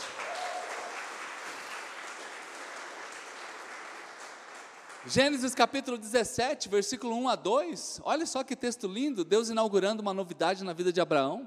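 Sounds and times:
audience applause: 0.0 - 5.5
speech: 5.0 - 11.4.

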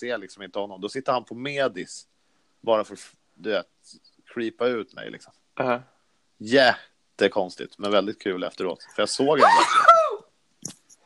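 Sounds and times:
speech: 0.0 - 9.9
sneeze: 9.4 - 10.2.

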